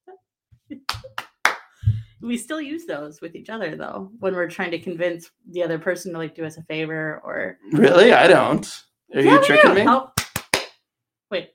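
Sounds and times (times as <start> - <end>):
hand clapping: 0.8 - 1.8, 9.4 - 10.8
speech: 2.2 - 10.1, 11.3 - 11.5.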